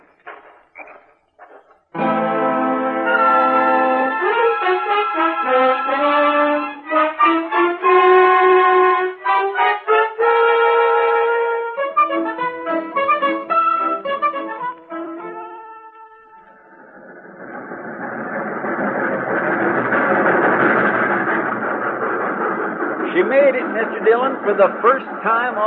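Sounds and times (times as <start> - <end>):
train pulling into the station: 1.9 - 25.6
speech: 24.5 - 25.6.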